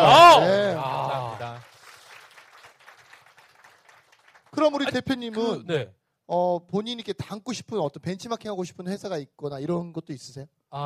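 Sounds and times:
audience applause: 0.0 - 4.7
speech: 4.6 - 10.8.

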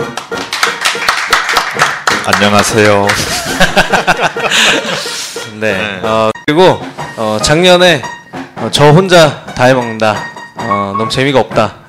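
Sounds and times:
applause for guest: 0.0 - 3.5
speech: 2.3 - 10.3, 10.9 - 11.8
laughter: 3.0 - 5.4.

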